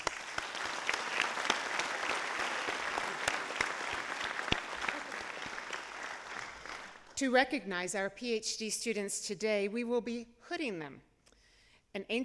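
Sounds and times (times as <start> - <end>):
round of applause: 0.0 - 7.2
speech: 7.2 - 11.1, 11.9 - 12.2.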